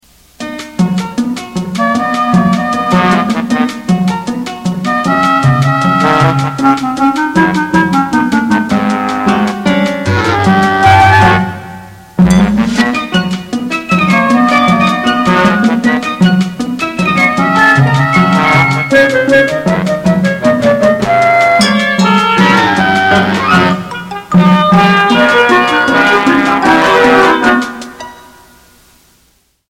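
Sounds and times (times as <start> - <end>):
music: 0.1 - 29.6.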